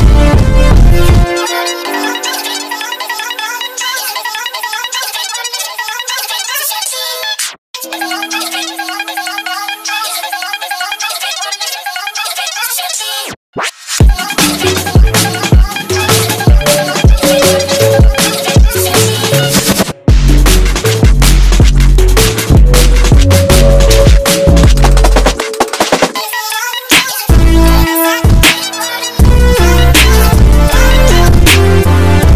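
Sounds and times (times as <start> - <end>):
instrumental remake: 0.0 - 3.8, 7.8 - 10.2, 14.1 - 32.3.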